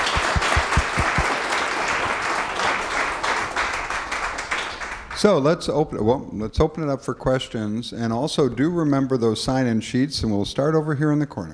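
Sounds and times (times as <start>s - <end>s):
crowd applause: 0.0s - 5.3s
speech: 5.2s - 11.5s.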